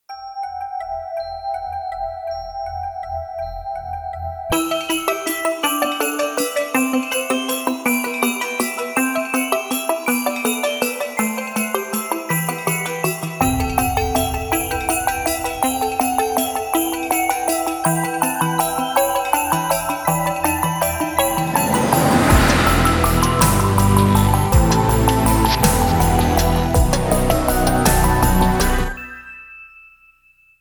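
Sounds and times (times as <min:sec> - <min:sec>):
bells: 0:00.1 - 0:30.6
breakbeat drums: 0:13.4 - 0:18.2, 0:21.2 - 0:29.0.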